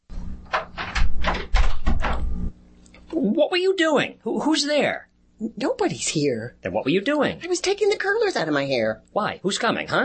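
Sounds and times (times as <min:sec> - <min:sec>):
door being opened: 0:00.4 - 0:02.3
speech: 0:03.1 - 0:10.0.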